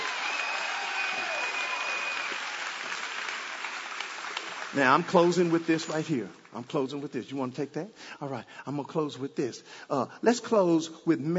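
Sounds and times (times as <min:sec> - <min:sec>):
audience clapping: 0:00.0 - 0:06.8
speech: 0:04.7 - 0:11.3.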